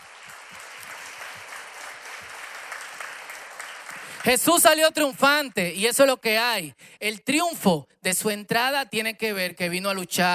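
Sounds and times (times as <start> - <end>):
loud applause: 0.0 - 4.9
speech: 4.2 - 10.3.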